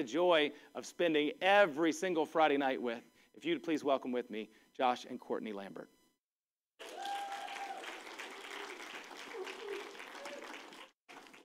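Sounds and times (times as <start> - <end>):
speech: 0.0 - 6.0
high whistle-like yell: 6.8 - 10.7
whoops and cheers: 6.8 - 10.9
crowd applause: 6.8 - 11.4.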